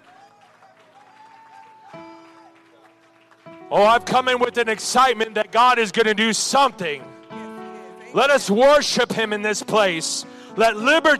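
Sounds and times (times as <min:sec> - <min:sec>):
audience clapping: 0:00.0 - 0:08.0
sustained organ chords: 0:01.9 - 0:11.1
speech: 0:03.7 - 0:07.1, 0:08.1 - 0:11.1.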